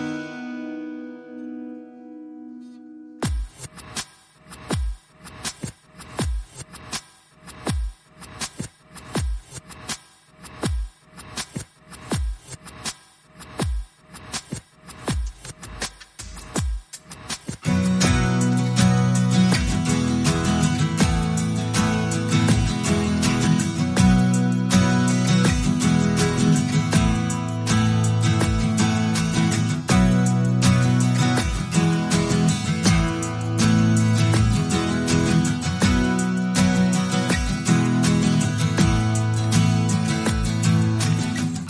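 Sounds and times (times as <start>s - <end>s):
acoustic guitar: 0.0s - 9.9s, 16.4s - 41.6s
percussion: 3.2s - 41.6s.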